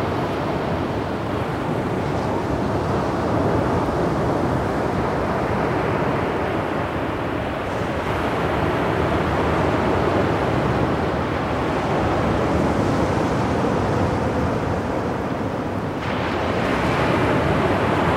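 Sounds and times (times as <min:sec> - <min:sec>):
ocean surf roar: 0:00.0 - 0:18.1.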